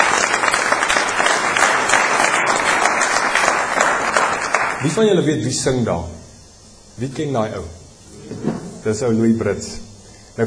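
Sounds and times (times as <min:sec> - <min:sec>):
church congregation applause after praise and worship singing: 0:00.0 - 0:05.2
speech: 0:04.8 - 0:06.2, 0:07.0 - 0:07.8, 0:08.8 - 0:10.4.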